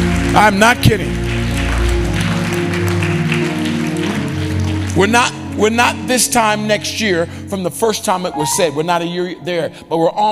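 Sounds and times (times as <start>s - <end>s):
audience clapping hands: 0.0s - 6.8s
keyboard chords: 0.0s - 10.3s
speech: 0.4s - 1.2s, 5.0s - 10.3s.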